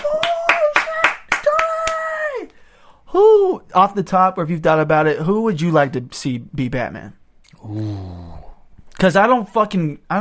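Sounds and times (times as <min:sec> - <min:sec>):
crowd clapping in a steady rhythm: 0:00.0 - 0:02.0
speech: 0:03.1 - 0:10.2.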